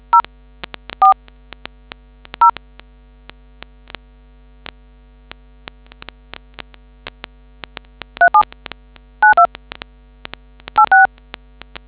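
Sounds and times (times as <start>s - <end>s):
DTMF tones: 8.2s - 8.4s, 9.2s - 9.5s, 10.8s - 11.1s.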